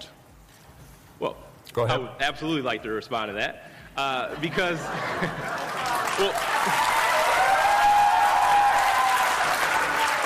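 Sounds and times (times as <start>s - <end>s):
speech: 1.2s - 7.0s
laughter: 4.3s - 7.0s
crowd clapping and cheering: 5.2s - 10.2s
sustained whoop: 6.4s - 10.2s.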